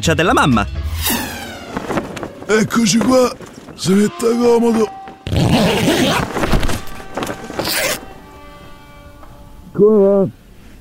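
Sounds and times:
speech: 0.0s - 1.2s, 2.5s - 6.0s, 9.8s - 10.4s
zipper being pulled open: 5.3s - 6.6s, 7.6s - 8.1s.

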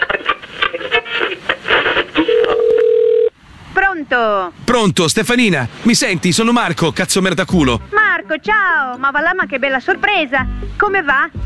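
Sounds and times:
crackly static-filled mobile phone line noise: 0.0s - 8.0s
speech: 4.2s - 11.4s.

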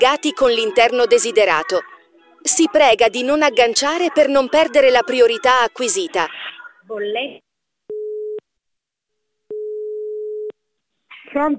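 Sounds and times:
speech: 0.0s - 7.4s, 11.3s - 11.5s
phone busy tone after hang-up: 7.9s - 8.4s, 9.5s - 10.5s.

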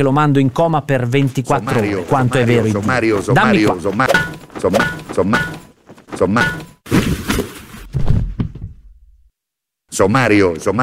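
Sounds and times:
speech: 0.0s - 7.1s, 10.0s - 10.8s
body thudding onto the floor: 6.9s - 8.8s.

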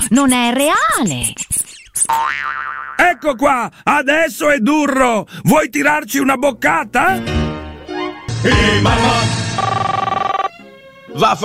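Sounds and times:
speech: 0.1s - 1.5s, 2.1s - 7.4s, 8.4s - 9.4s, 11.2s - 11.4s
telephone ringing: 9.1s - 10.6s.

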